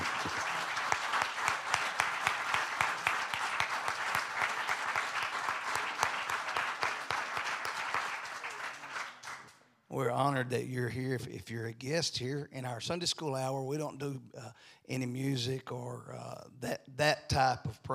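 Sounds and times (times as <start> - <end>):
audience hand clap: 0.0 - 9.6
speech: 10.0 - 17.9.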